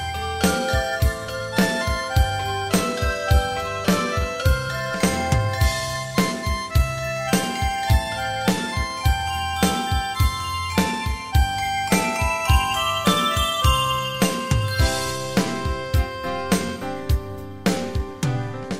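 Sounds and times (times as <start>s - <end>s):
beat music: 0.0s - 18.7s.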